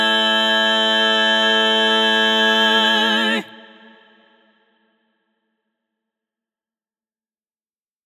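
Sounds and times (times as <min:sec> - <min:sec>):
SSAA women's choir full mix: 0:00.0 - 0:04.6.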